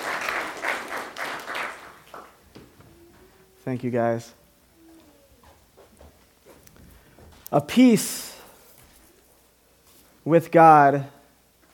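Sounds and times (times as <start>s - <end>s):
audience applause: 0.0s - 2.4s
speech: 3.7s - 4.4s, 7.5s - 8.3s, 10.3s - 11.2s.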